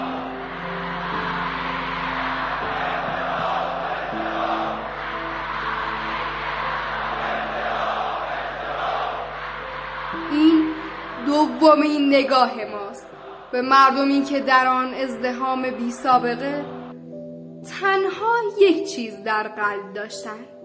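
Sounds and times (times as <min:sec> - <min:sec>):
crowd shouting and wailing in streets: 0:00.0 - 0:11.6, 0:13.0 - 0:13.9
speech: 0:11.6 - 0:12.9, 0:13.5 - 0:16.8, 0:17.7 - 0:20.6.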